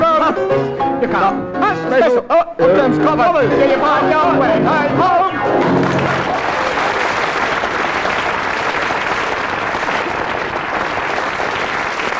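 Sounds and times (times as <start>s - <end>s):
speech: 0.4s - 6.4s
audience applause: 5.6s - 12.1s.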